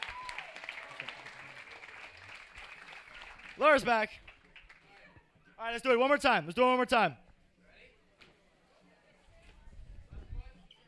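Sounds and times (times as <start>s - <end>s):
applause: 0.0s - 5.1s
speech: 3.6s - 4.3s, 5.6s - 7.2s.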